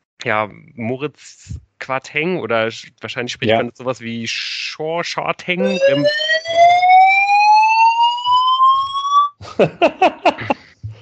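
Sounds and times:
speech: 0:00.2 - 0:06.8, 0:09.6 - 0:10.2
laughter: 0:02.3 - 0:04.4, 0:05.4 - 0:06.1, 0:09.4 - 0:10.9
fire alarm: 0:05.6 - 0:09.4.

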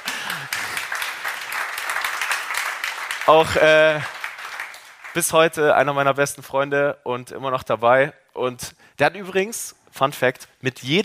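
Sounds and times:
audience applause: 0:00.0 - 0:05.5
speech: 0:03.3 - 0:04.2, 0:05.2 - 0:11.0.

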